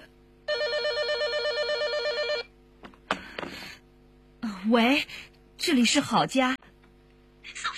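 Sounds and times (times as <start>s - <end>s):
telephone ringing: 0.5s - 2.5s
speech: 4.6s - 6.6s.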